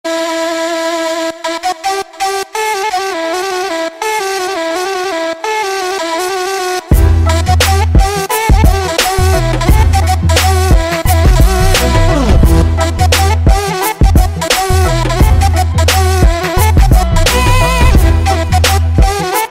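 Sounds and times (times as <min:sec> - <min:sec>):
flute: 0:00.1 - 0:19.4.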